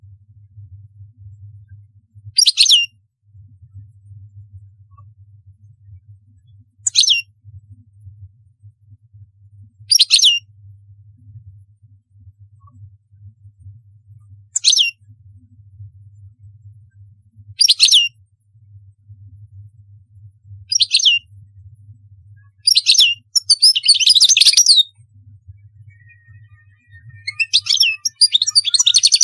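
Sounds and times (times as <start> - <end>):
European goldfinch twittering song: 2.4 - 2.9, 6.9 - 7.2, 9.9 - 10.4, 14.6 - 14.9, 17.6 - 18.1, 20.7 - 21.2, 22.7 - 24.9, 25.9 - 29.2.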